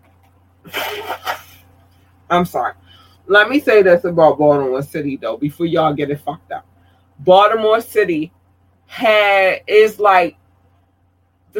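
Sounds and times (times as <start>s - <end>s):
low hum: 0.0s - 11.5s
nose blowing: 0.7s - 1.6s
speech: 2.3s - 10.4s.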